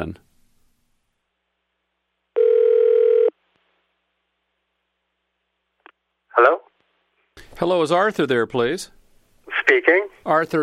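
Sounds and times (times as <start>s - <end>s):
speech: 0.0s - 0.2s, 7.6s - 9.0s, 9.7s - 10.6s
telephone ringing: 2.4s - 3.3s.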